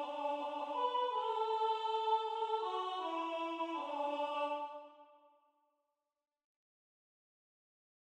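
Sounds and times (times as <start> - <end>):
soprano singing: 0.0 - 5.1.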